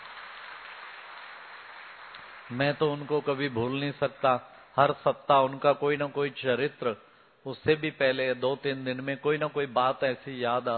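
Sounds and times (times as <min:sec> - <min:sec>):
audience applause for a grandmother: 0:00.0 - 0:03.3
speech: 0:02.5 - 0:10.7.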